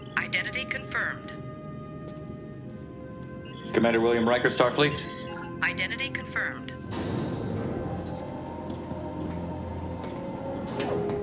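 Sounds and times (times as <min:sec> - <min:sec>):
speech: 0:00.3 - 0:01.4, 0:03.7 - 0:07.3
heavy security door rolling open with mechanical rumble and low hum: 0:06.8 - 0:11.2.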